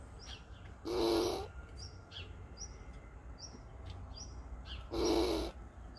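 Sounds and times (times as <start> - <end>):
squirrel growling: 0.8 - 1.5, 4.9 - 5.6.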